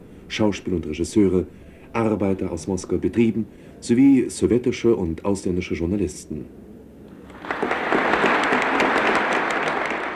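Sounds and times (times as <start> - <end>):
speech: 0.3 - 6.6
large audience applauding in a hall: 7.3 - 10.1.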